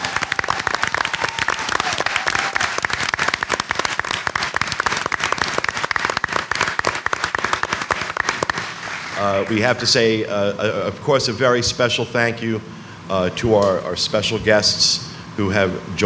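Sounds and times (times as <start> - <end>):
audience applause: 0.0 - 9.8
speech: 9.3 - 16.0.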